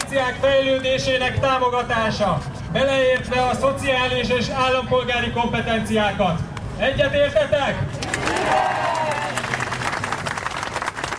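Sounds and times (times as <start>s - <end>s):
speech: 0.1s - 8.8s
Tanítanék movement protest crowd in Budapest clapping: 8.0s - 11.1s
protest crowd scattered shouts: 8.2s - 9.4s.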